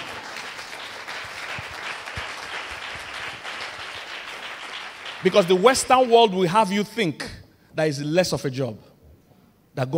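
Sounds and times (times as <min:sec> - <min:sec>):
audience clapping: 0:00.0 - 0:06.6
speech: 0:05.2 - 0:08.9, 0:09.8 - 0:09.9.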